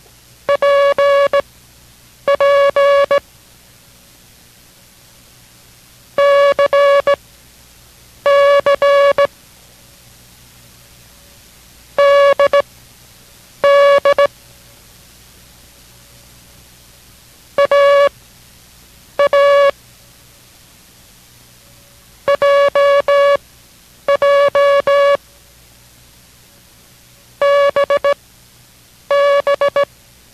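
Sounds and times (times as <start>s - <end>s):
Morse code characters in a mid-pitched tone: 0.5s - 1.4s, 2.3s - 3.2s, 6.2s - 7.2s, 8.3s - 9.3s, 12.0s - 12.6s, 13.6s - 14.3s, 17.6s - 18.1s, 19.2s - 19.7s, 22.3s - 23.4s, 24.1s - 25.2s, 27.4s - 28.2s, 29.1s - 29.9s.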